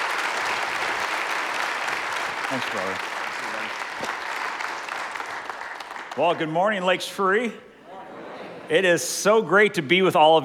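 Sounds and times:
church congregation applause: 0:00.0 - 0:06.8
speech: 0:02.5 - 0:03.2, 0:06.2 - 0:07.7, 0:08.7 - 0:10.4.

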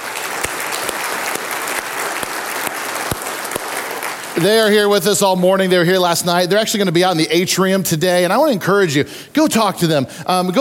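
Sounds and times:
audience applause: 0:00.0 - 0:05.0
speech: 0:04.4 - 0:10.5.

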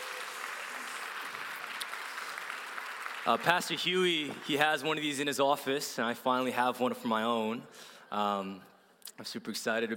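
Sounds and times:
audience clapping: 0:00.0 - 0:05.3
speech: 0:03.2 - 0:09.9.

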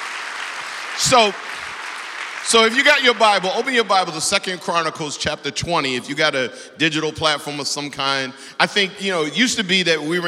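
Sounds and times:
audience clapping: 0:00.0 - 0:04.8
speech: 0:01.0 - 0:01.5, 0:02.4 - 0:10.2.

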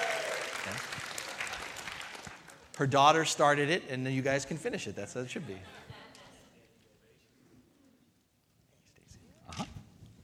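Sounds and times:
audience applause: 0:00.0 - 0:02.8
speech: 0:02.8 - 0:05.8
laughter: 0:05.3 - 0:06.7.

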